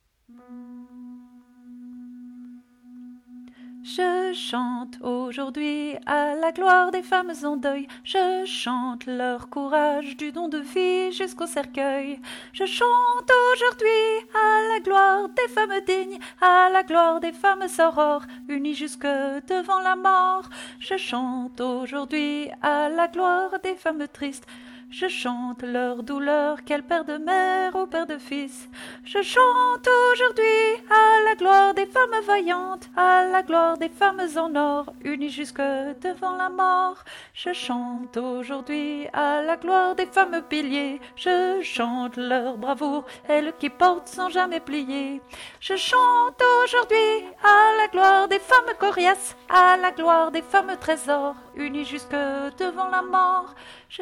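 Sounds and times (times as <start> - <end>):
soprano voice: 1.7 - 53.9.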